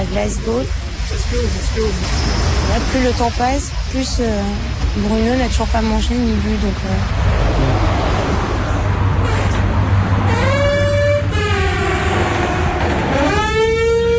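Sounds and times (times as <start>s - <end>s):
rumbling noise: 0.0s - 14.1s
speech: 0.2s - 7.6s
gym entrance door metallic squeal: 10.3s - 14.1s.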